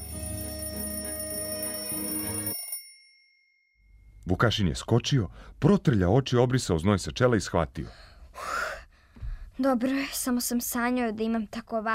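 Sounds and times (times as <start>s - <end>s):
alarm clock ringing: 0.0s - 4.2s
speech: 4.3s - 8.6s, 9.6s - 11.9s.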